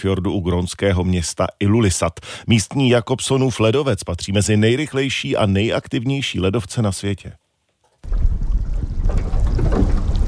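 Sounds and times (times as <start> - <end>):
speech: 0.0 - 7.4
sightseeing boat rumbling on open fjord water: 8.1 - 10.2.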